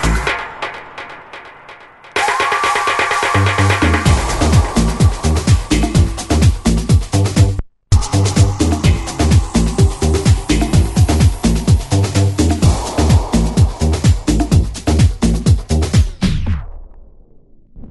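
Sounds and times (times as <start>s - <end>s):
tribal groove music: 0.0s - 16.4s.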